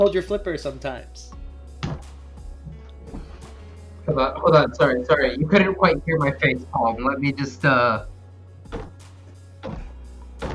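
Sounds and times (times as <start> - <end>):
speech: 0.0 - 1.4, 4.1 - 8.1
head banging on a table: 1.8 - 3.4, 8.7 - 10.5.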